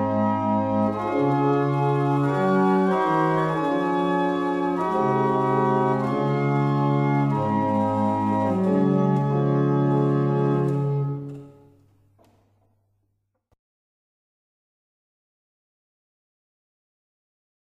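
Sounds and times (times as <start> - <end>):
barrel organs: 0.0 - 11.8.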